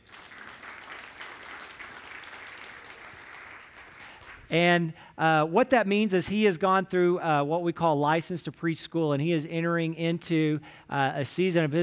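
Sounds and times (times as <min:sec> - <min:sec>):
audience applause: 0:00.0 - 0:04.5
speech: 0:04.5 - 0:11.8.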